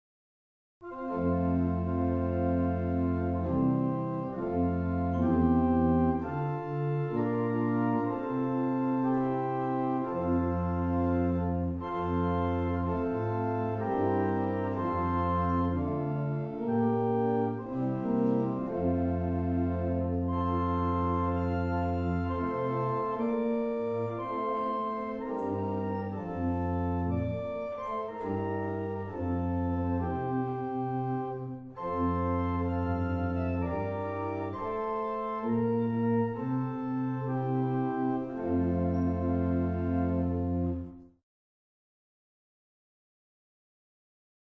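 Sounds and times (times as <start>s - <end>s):
barrel organ playing Irish music: 0.8s - 41.0s.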